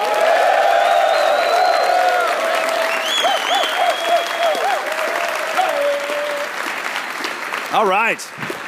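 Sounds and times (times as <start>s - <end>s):
audience cheering and whooping: 0.0s - 6.7s
live studio audience applause at the Alpha Tau Omega National Convention in Orlando: 0.0s - 8.6s
speech: 7.8s - 8.6s.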